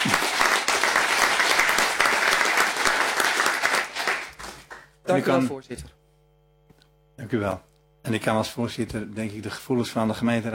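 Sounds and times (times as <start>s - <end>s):
council applause: 0.0s - 5.0s
speech: 5.1s - 6.0s, 7.3s - 10.5s.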